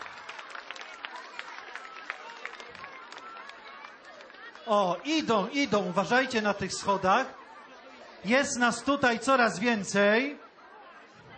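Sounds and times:
applause: 0:00.0 - 0:05.0
speech: 0:04.7 - 0:07.4, 0:08.2 - 0:10.4.

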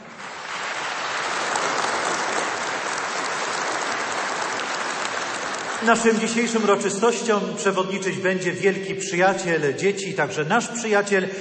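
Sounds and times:
warm audience applause: 0:00.0 - 0:06.7
speech: 0:05.8 - 0:11.3.

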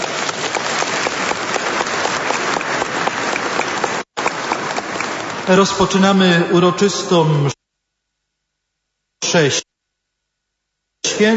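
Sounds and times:
audience applauding: 0:00.0 - 0:06.4
speech: 0:05.5 - 0:07.6, 0:09.3 - 0:09.7, 0:11.0 - 0:11.3.

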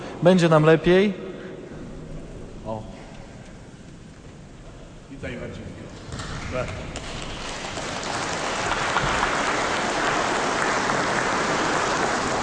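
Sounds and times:
speech: 0:00.2 - 0:01.3
audience clapping: 0:06.1 - 0:12.4.

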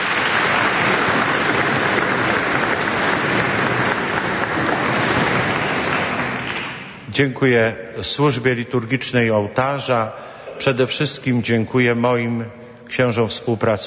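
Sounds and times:
audience applause: 0:00.0 - 0:07.1
speech: 0:07.2 - 0:13.8.

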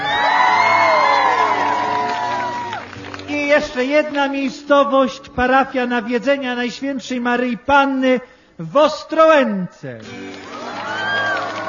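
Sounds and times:
crowd cheering: 0:00.0 - 0:03.6, 0:10.0 - 0:11.6
crowd clapping: 0:00.0 - 0:04.7, 0:10.0 - 0:11.6
speech: 0:03.6 - 0:10.3.

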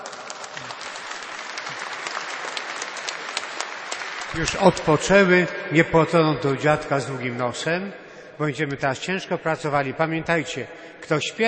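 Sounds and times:
audience applause: 0:00.0 - 0:05.4
speech: 0:04.3 - 0:11.4.

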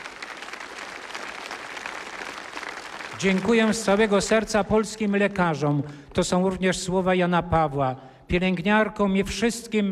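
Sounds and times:
audience applause: 0:00.0 - 0:04.4
speech: 0:03.2 - 0:09.9.

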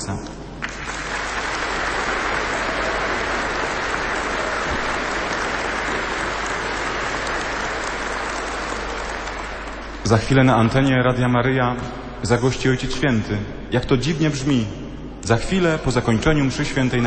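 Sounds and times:
speech: 0:00.1 - 0:00.4, 0:10.0 - 0:17.0
crowd applauding: 0:00.6 - 0:10.2.

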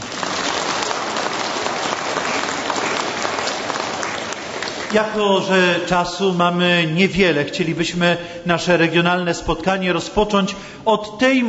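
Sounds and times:
audience applause: 0:00.0 - 0:05.7
speech: 0:04.9 - 0:11.4.

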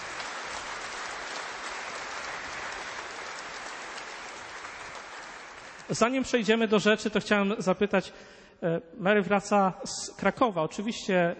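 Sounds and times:
audience clapping: 0:00.0 - 0:06.3
speech: 0:05.9 - 0:11.3.

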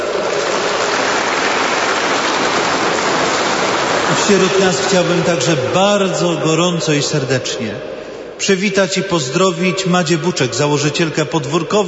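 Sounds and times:
crowd applauding: 0:00.0 - 0:05.8
speech: 0:04.3 - 0:11.8.

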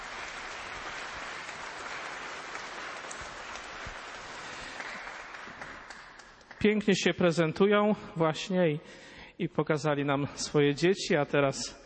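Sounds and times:
audience applause: 0:00.0 - 0:06.6
speech: 0:06.6 - 0:11.8.

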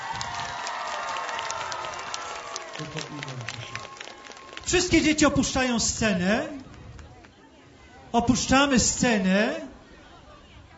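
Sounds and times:
audience applause: 0:00.0 - 0:05.2
speech: 0:02.8 - 0:04.0, 0:04.7 - 0:06.6, 0:08.1 - 0:09.7.

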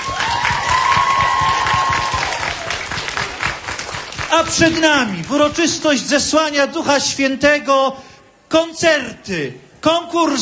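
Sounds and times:
crowd on a square applauding at an outdoor Pentecost celebration: 0:00.0 - 0:05.9
speech: 0:04.3 - 0:10.4.

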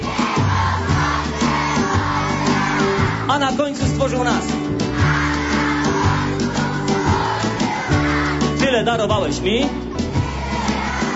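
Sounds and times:
children shouting loudly: 0:00.0 - 0:03.3, 0:04.8 - 0:08.6, 0:09.9 - 0:11.1
speech: 0:03.3 - 0:05.2, 0:08.7 - 0:09.8.

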